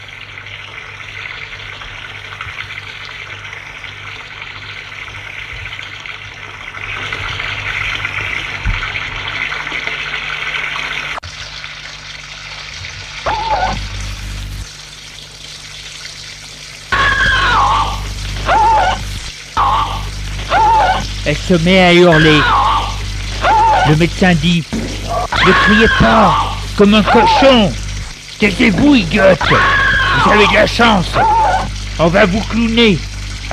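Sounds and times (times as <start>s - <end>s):
boiling water pouring down: 0.0s - 33.5s
speech: 21.4s - 22.6s, 23.9s - 27.8s, 28.4s - 31.4s, 32.0s - 33.5s.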